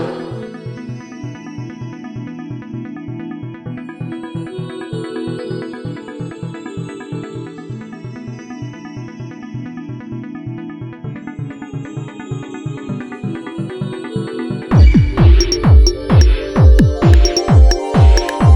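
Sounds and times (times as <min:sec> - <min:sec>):
bongo drums: 0:14.7 - 0:18.5.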